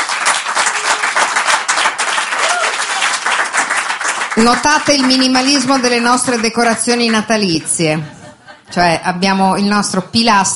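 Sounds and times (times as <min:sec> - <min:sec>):
studio audience applause: 0:00.0 - 0:07.2
speech: 0:04.4 - 0:10.5
laughter: 0:07.4 - 0:08.8.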